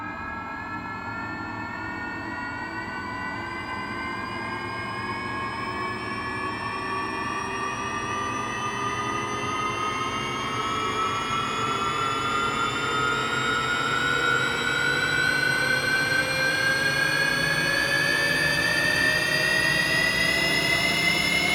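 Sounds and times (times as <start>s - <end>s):
turbine starting: 0.2s - 21.5s.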